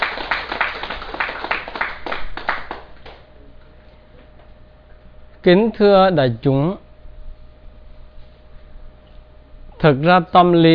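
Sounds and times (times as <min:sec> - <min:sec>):
audience applause: 0:00.0 - 0:03.2
speech: 0:05.4 - 0:06.8, 0:09.8 - 0:10.7.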